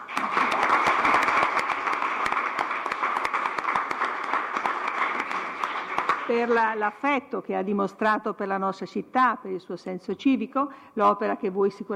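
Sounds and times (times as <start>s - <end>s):
crowd applauding: 0.0s - 6.8s
speech: 6.3s - 11.9s.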